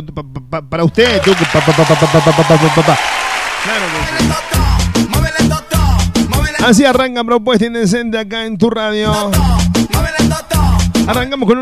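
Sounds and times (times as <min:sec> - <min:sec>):
speech: 0:00.0 - 0:05.3, 0:06.6 - 0:10.1, 0:11.1 - 0:11.6
applause: 0:01.0 - 0:05.3
music: 0:01.1 - 0:07.1, 0:08.9 - 0:11.6.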